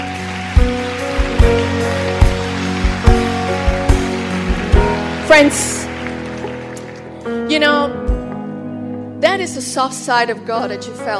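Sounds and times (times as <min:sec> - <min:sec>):
audience applause: 0:00.0 - 0:07.3
speech: 0:05.3 - 0:05.8, 0:07.5 - 0:08.0, 0:09.2 - 0:11.1.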